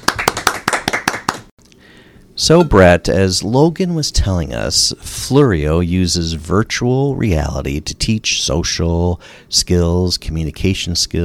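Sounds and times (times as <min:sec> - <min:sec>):
round of applause: 0:00.0 - 0:01.5
speech: 0:02.4 - 0:11.2.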